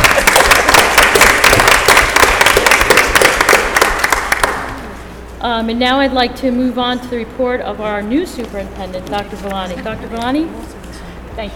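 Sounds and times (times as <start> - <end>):
audience applause: 0.0 - 4.8
speech: 5.6 - 10.8, 11.4 - 11.5.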